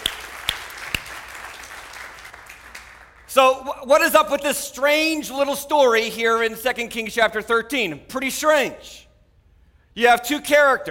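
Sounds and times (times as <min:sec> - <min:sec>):
audience applause: 0:00.0 - 0:03.3
speech: 0:03.4 - 0:09.0, 0:10.0 - 0:10.8.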